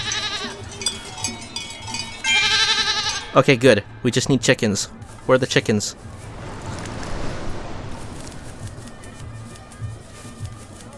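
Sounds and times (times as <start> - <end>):
goat bleating: 0.0 - 4.9
speech: 3.4 - 6.2.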